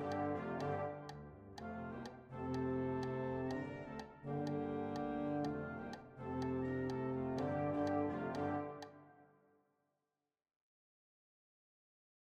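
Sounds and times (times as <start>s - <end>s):
orchestral trombone: 0.0s - 8.9s.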